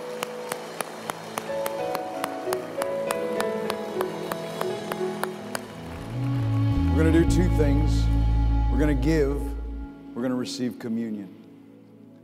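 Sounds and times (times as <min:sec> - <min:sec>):
church audience clapping hands in praise: 0:00.0 - 0:07.9
speech: 0:07.0 - 0:08.2, 0:08.8 - 0:09.5, 0:10.4 - 0:11.4.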